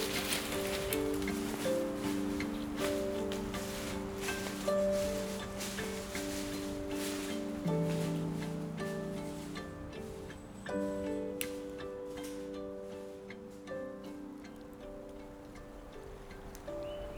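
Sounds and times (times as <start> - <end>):
anthill ambience: 0.0 - 17.1
horses in a meadow: 0.0 - 17.1
tree creaking in wind: 0.0 - 17.1
wind in Lamothe: 0.0 - 17.1.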